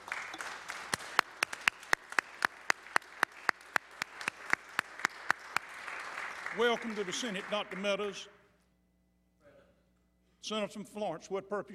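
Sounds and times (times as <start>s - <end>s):
sharp evenly spaced claps in a Senate chamber: 0.0s - 8.2s
speech: 6.6s - 8.4s, 10.5s - 11.7s.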